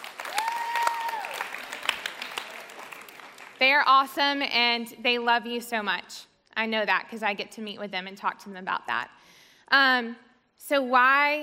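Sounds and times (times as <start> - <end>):
audience applause: 0.0 - 3.6
speech: 3.6 - 11.4.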